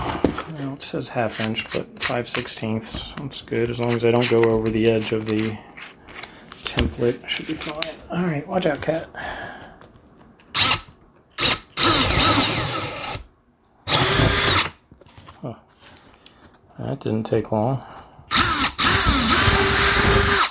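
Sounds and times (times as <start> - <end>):
speech: 0.8 - 6.0, 7.0 - 9.4, 16.8 - 18.0
power drill boring holes in a door: 10.5 - 13.3, 13.9 - 14.8, 18.3 - 20.4.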